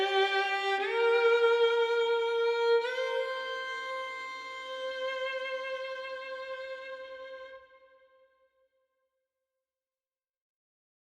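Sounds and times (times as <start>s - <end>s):
violin solo: 0.0s - 8.2s.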